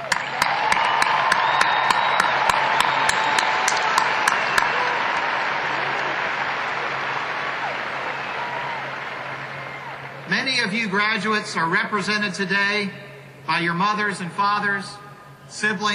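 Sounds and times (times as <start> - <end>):
sharp evenly spaced claps: 0.0 - 10.2
audience applause: 0.0 - 10.3
speech: 10.8 - 15.9.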